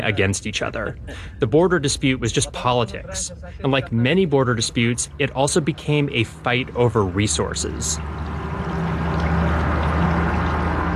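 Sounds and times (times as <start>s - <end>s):
speech: 0.0s - 8.4s
river water flowing: 6.7s - 10.9s.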